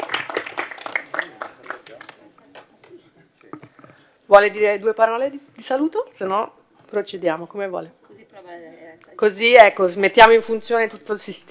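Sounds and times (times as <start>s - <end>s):
council meeting attendees applauding: 0.0s - 2.7s
speech: 4.3s - 8.0s, 9.2s - 11.4s.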